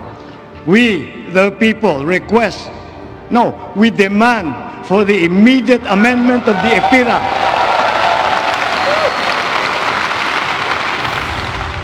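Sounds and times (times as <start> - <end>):
speech: 0.6 - 7.6
large crowd applauding at a speech: 6.2 - 11.8.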